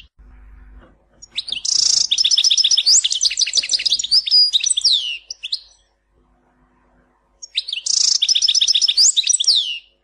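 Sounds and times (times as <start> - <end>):
European goldfinch singing twittering and tinkling notes with buzzy trills: 1.2 - 5.8, 7.4 - 9.9.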